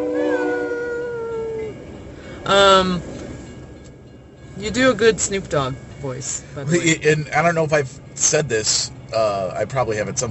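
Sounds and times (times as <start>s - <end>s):
train horn: 0.0s - 1.8s
speech: 2.5s - 3.1s, 4.6s - 10.3s.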